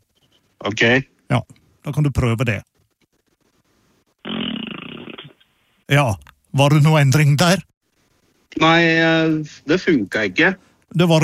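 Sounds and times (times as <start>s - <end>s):
speech: 0.6s - 2.7s, 5.9s - 7.7s, 8.5s - 11.2s
person blowing a raspberry imitating a fart: 4.2s - 5.4s.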